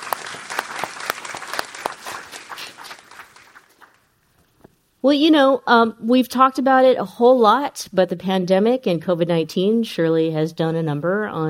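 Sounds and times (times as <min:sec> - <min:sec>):
audience applause: 0:00.0 - 0:04.1
speech: 0:05.0 - 0:11.4.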